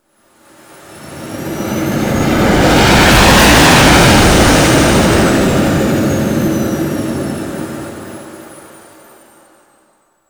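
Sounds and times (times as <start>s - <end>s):
ship moving: 0.9s - 8.6s.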